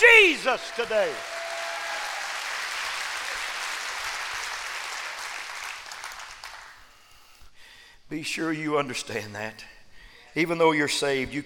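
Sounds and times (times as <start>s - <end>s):
speech: 0.0s - 1.4s, 8.1s - 9.8s, 10.4s - 11.4s
audience hand clapping: 0.0s - 7.0s.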